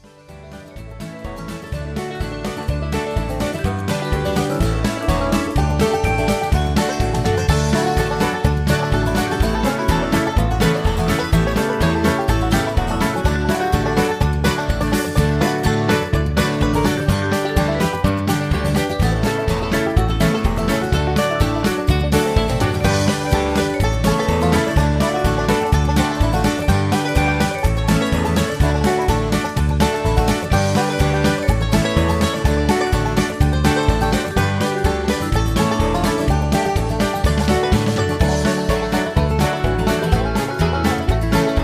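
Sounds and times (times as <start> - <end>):
instrumental music: 0.0 - 41.6.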